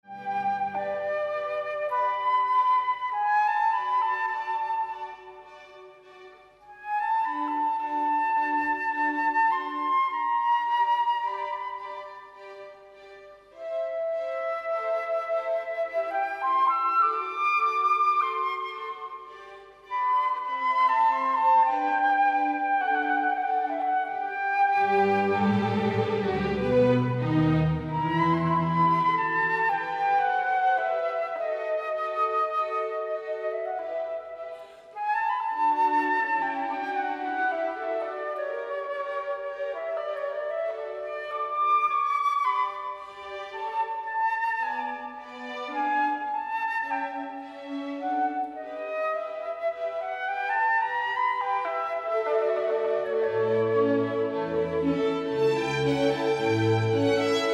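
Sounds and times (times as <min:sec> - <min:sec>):
flute concerto: 0:00.0 - 0:57.5.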